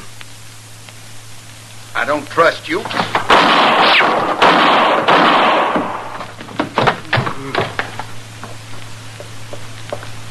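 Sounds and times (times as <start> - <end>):
low steady hum: 0.0 - 10.2
speech: 2.0 - 4.8
gunshots: 2.9 - 6.9.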